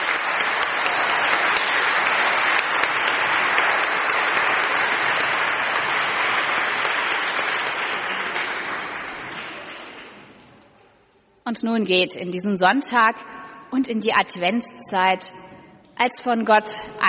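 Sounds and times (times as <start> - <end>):
crowd clapping: 0.0 - 10.5
speech: 11.5 - 15.4, 16.0 - 17.0.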